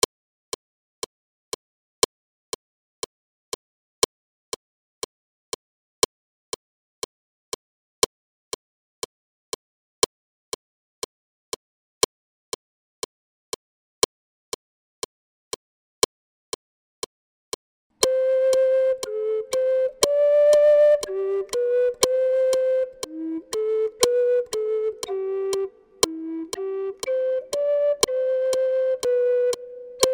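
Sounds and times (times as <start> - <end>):
flute: 18.0 - 30.1.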